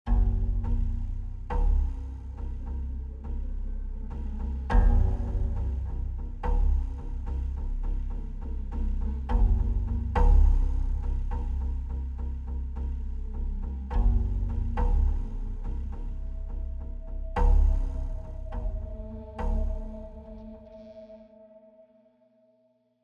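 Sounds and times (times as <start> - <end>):
tense mood music: 0.1 - 22.0.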